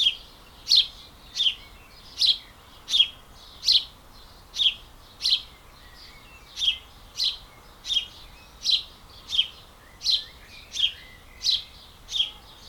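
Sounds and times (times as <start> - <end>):
bird repeating a sharp bright chirp in a dawn chorus: 0.0 - 12.6.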